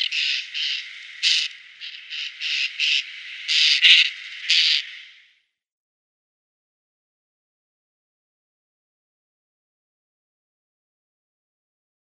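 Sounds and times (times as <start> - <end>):
Spotless Starling calls: 0.0 - 5.4.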